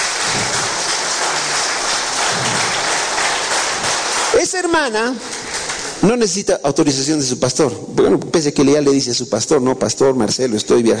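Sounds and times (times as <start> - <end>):
audience applauding: 0.0 - 6.4
speech: 4.7 - 5.3, 6.0 - 10.9.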